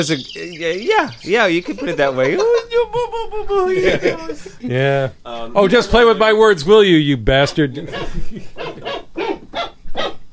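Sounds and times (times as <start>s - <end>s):
speech: 0.0s - 8.6s
laughter: 1.1s - 4.6s, 7.7s - 9.6s
dog barking: 7.9s - 10.3s.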